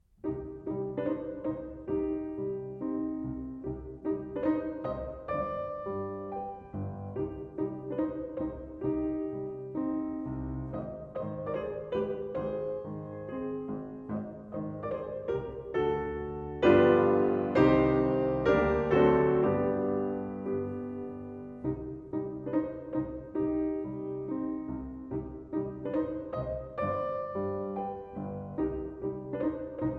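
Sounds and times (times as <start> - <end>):
four-hand piano: 0.0 - 29.9.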